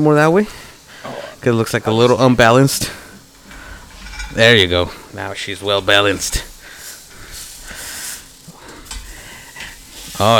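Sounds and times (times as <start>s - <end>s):
speech: 0.0s - 0.6s, 1.4s - 3.0s, 4.3s - 6.5s, 10.2s - 10.3s
carne asada steak sizzling in a hot pan during live cooking: 0.1s - 10.3s
stirring or scraping: 3.4s - 10.3s.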